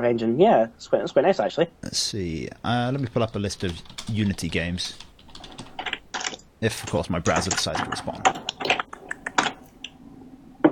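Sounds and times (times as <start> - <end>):
speech: 0.0 - 5.1, 6.6 - 8.4
typing on a computer keyboard: 2.8 - 9.6.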